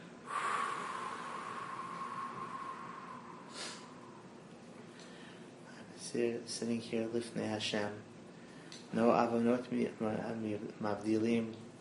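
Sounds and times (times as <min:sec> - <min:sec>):
breathing in through the nose and blowing out during guided Jewish prayer: 0:00.2 - 0:05.6
speech: 0:06.1 - 0:08.1, 0:08.9 - 0:11.7.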